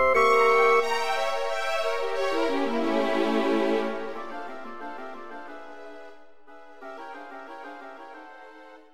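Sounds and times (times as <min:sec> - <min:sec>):
small orchestra playing an allegro: 0:00.0 - 0:06.1.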